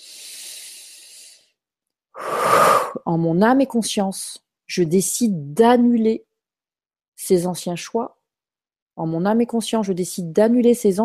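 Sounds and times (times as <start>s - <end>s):
person breathing during a guided meditation: 0.0s - 3.0s
speech: 3.0s - 6.3s, 7.2s - 8.2s, 9.0s - 11.0s.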